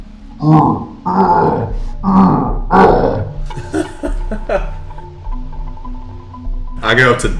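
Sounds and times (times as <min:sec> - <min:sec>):
grunting groans behind a closed door: 0:00.3 - 0:03.6
laughter: 0:03.5 - 0:04.9.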